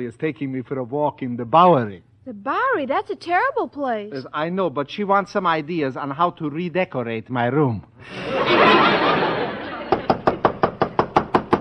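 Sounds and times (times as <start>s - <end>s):
speech: 0.0s - 9.3s
people laughing: 8.0s - 10.7s
loud knocking on a door: 9.9s - 11.5s.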